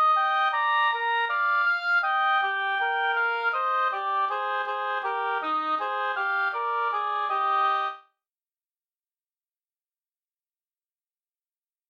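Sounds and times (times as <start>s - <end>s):
easy allegro oboe duet in E-flat major: 0.0s - 8.0s.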